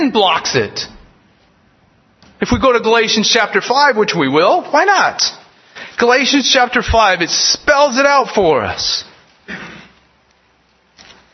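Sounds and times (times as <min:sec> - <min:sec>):
speech: 0:00.0 - 0:00.9, 0:02.4 - 0:09.7
book pages turning: 0:10.8 - 0:11.3.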